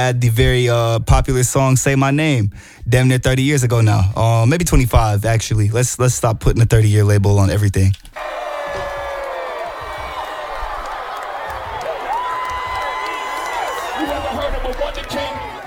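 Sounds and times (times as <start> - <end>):
speech: 0.0 - 8.4
concert crowd cheering: 8.2 - 15.6
whoops and screams: 8.2 - 15.6.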